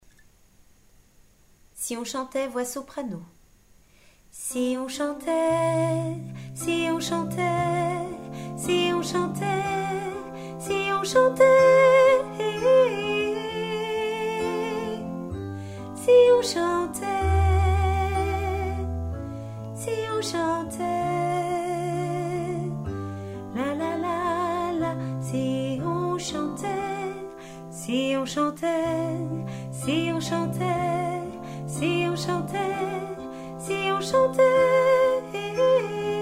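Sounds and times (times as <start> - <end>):
soprano singing: 4.4 - 36.2.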